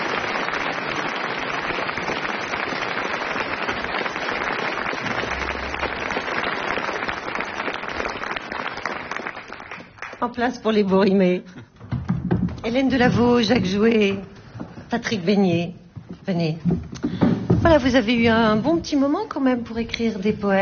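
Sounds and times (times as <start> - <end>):
audience applause: 0.0 - 10.2
speech: 10.2 - 11.6, 12.6 - 14.3, 14.9 - 17.0, 17.6 - 20.5.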